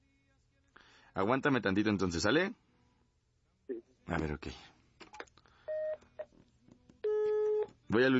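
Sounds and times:
speech: 0:01.2 - 0:02.6, 0:03.8 - 0:04.7, 0:07.9 - 0:08.1
push-button dialing tones from a telephone being redialed: 0:05.7 - 0:06.0, 0:07.0 - 0:07.7.

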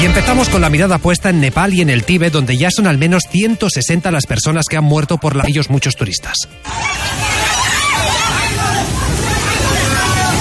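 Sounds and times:
speech: 0:00.0 - 0:07.3
rushing flood torrent: 0:06.6 - 0:10.3
terrified crowd before rushing flood torrent: 0:06.6 - 0:10.3.

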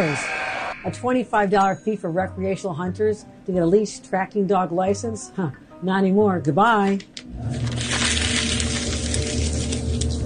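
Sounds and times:
speech: 0:00.0 - 0:07.7
paper being crumpled: 0:07.5 - 0:10.2.

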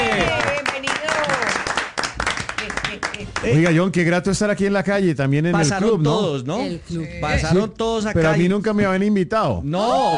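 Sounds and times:
audience applause: 0:00.0 - 0:03.8
speech: 0:03.4 - 0:10.1.

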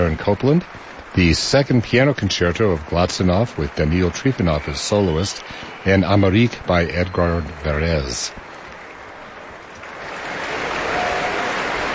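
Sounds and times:
faint cheers: 0:00.0 - 0:07.5, 0:10.1 - 0:11.9
speech: 0:00.0 - 0:08.4
large concert audience applauding: 0:00.0 - 0:11.9.

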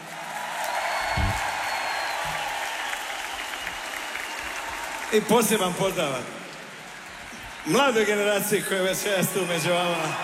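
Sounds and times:
concert audience applause: 0:00.0 - 0:10.2
low thumps: 0:01.0 - 0:01.5
speech: 0:05.1 - 0:06.4, 0:07.6 - 0:10.2.

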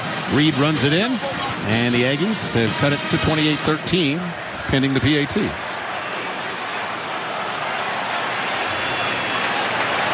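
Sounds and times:
football stadium crowd cheering: 0:00.0 - 0:10.1
speech: 0:00.3 - 0:05.6
scattered clapping: 0:09.0 - 0:10.1.

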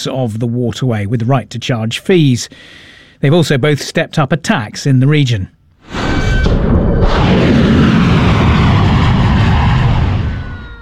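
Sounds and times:
speech: 0:00.0 - 0:07.8
explosions from US military strikes in US Central Command footage: 0:05.8 - 0:10.8.

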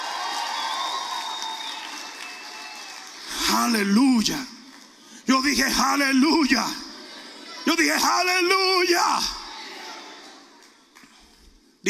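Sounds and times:
audience shouting and cheering: 0:00.0 - 0:03.8, 0:05.3 - 0:10.7
speech: 0:03.6 - 0:04.6, 0:05.3 - 0:06.8, 0:07.6 - 0:09.4.

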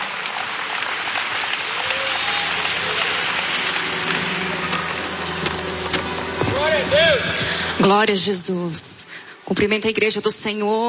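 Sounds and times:
audience applause: 0:00.0 - 0:07.8
speech: 0:06.9 - 0:08.9, 0:09.5 - 0:10.8.

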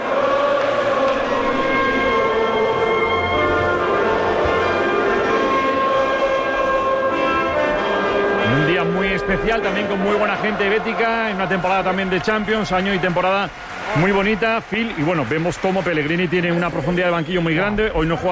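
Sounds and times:
club anthem played in the stadium before a football match: 0:00.0 - 0:18.2
stadium crowd noise before the Levante-Betis match: 0:00.0 - 0:18.2
speech: 0:09.3 - 0:18.2.

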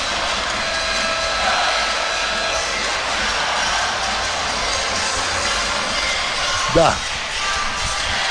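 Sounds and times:
Tornado basketball fans roaring and chanting in the Zadar arena: 0:00.0 - 0:08.2
speech: 0:06.8 - 0:07.1.

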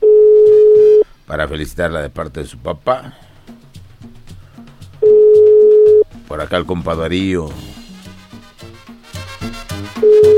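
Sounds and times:
telephone ringback tone of an outgoing call: 0:00.0 - 0:01.0, 0:05.0 - 0:06.0, 0:10.0 - 0:10.3
speech: 0:01.3 - 0:03.3, 0:06.3 - 0:07.8.

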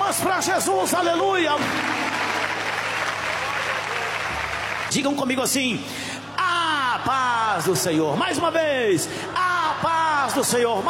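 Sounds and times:
speech: 0:00.1 - 0:02.2, 0:04.9 - 0:06.1, 0:07.0 - 0:10.8
church congregation clapping at a Pentecostal service: 0:01.4 - 0:05.0.

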